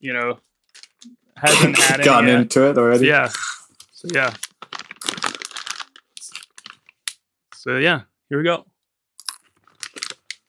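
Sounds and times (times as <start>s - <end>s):
speech: 0.0s - 4.4s, 7.6s - 8.7s
crinkling of cat treat packet being opened: 4.0s - 7.1s, 9.6s - 10.4s.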